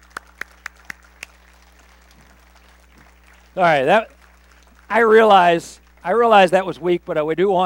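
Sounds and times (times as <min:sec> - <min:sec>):
five sharp separate hand claps: 0:00.0 - 0:05.0
low steady hum: 0:00.0 - 0:07.6
speech: 0:03.6 - 0:04.2, 0:04.9 - 0:07.6.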